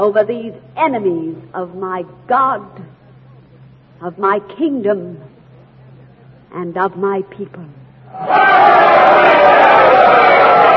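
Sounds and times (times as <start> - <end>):
speech: 0.0 - 3.0, 4.0 - 5.3, 6.5 - 10.2
crowd cheering after a speech: 8.1 - 10.7.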